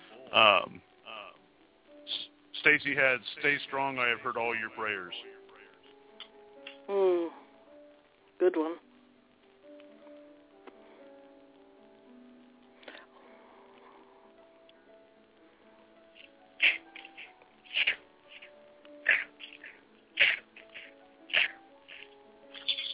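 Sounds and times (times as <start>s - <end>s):
speech: 0.4s - 0.9s, 2.6s - 5.4s, 6.9s - 7.4s, 8.4s - 8.9s
person sneezing: 16.6s - 18.0s, 19.0s - 21.6s.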